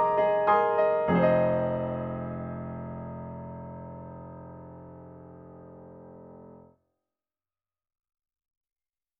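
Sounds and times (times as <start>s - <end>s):
piano: 0.0s - 6.7s.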